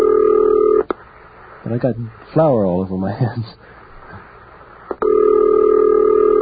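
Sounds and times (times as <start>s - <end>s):
telephone ringing: 0.0s - 0.8s, 5.0s - 6.3s
speech: 1.7s - 3.8s.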